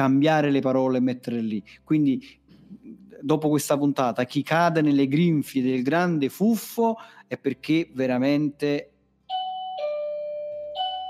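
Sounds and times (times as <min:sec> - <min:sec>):
speech: 0:00.0 - 0:02.4, 0:03.2 - 0:08.9
electronic doorbell chime: 0:09.3 - 0:11.0.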